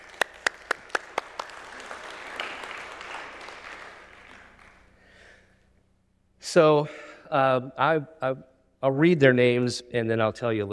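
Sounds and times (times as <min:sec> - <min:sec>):
audience applause: 0:00.0 - 0:05.0
speech: 0:06.5 - 0:10.7.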